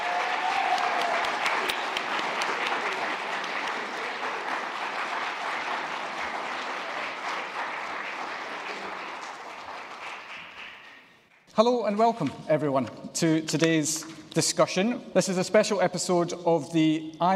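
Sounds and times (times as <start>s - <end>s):
audience applauding to welcome a host and panel at a hospitality institute event: 0.0s - 11.5s
speech: 11.6s - 17.3s.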